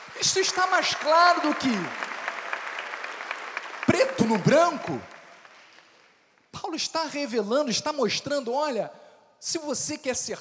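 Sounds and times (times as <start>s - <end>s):
audience applauding: 0.0s - 6.2s
speech: 0.2s - 2.1s, 4.0s - 5.2s, 6.7s - 10.3s.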